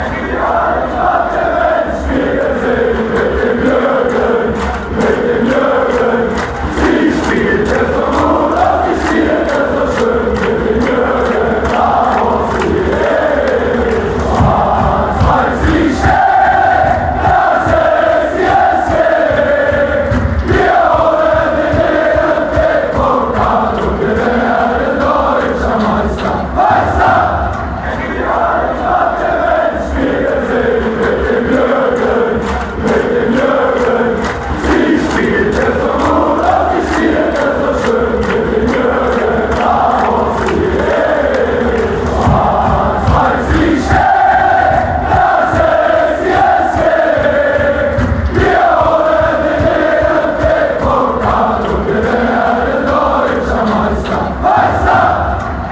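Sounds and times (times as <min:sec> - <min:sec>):
fans chanting: 0:00.0 - 0:55.7.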